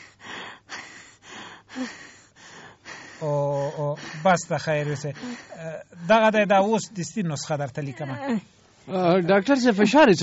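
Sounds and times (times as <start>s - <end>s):
patient rapid breathing during a doctor's examination: 0.0s - 6.0s
speech: 1.8s - 2.0s, 3.2s - 10.2s.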